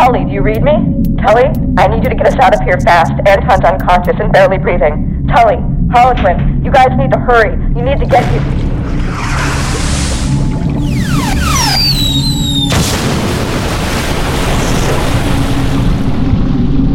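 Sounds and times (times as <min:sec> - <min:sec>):
speech: 0:00.2 - 0:09.5
submersible exploding: 0:08.0 - 0:16.8
whooshing, sliding whistles: 0:09.0 - 0:12.8.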